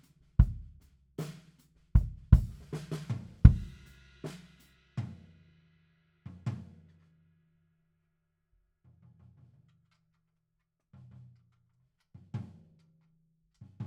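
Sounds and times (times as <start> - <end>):
bass drum: 0.4 - 1.3, 2.0 - 4.4.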